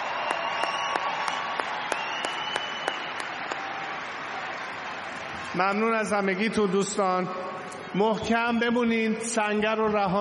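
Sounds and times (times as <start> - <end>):
sharp individual claps: 0.0 - 4.0
audience applause for the evening's performers: 0.0 - 6.2
speech: 5.6 - 10.1.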